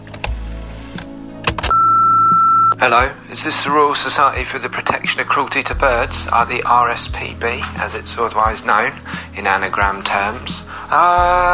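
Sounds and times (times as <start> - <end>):
answering machine beep: 1.7 - 2.8
speech: 2.8 - 11.5.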